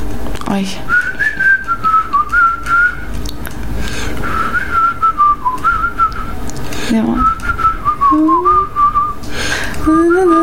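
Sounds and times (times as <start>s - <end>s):
speech: 0.5s - 1.1s, 6.9s - 7.4s
person whistling a film song melody: 0.9s - 3.1s, 4.2s - 6.4s, 7.2s - 10.4s.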